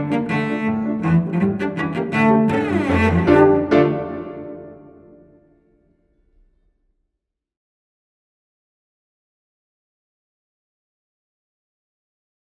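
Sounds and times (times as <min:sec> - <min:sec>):
cello: 0:00.0 - 0:05.3
piano: 0:00.0 - 0:05.6.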